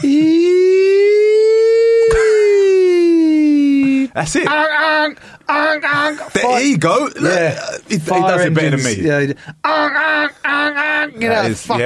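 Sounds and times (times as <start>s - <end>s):
voice imitating an emergency siren: 0.0s - 3.8s, 9.6s - 11.4s
speech: 4.2s - 10.3s, 11.2s - 11.8s.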